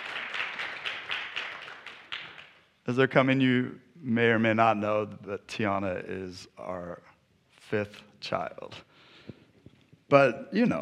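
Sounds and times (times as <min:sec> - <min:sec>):
audience applause welcoming a couple onto a stage: 0:00.0 - 0:02.6
speech: 0:02.9 - 0:07.1, 0:07.7 - 0:08.9, 0:10.1 - 0:10.8.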